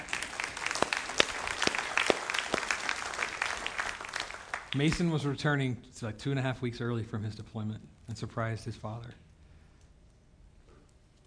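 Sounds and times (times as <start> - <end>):
audience applause: 0.0 - 5.0
speech: 4.7 - 9.3.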